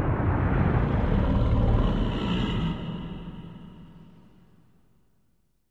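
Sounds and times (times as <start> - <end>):
animal growl sting: 0.1 - 4.5.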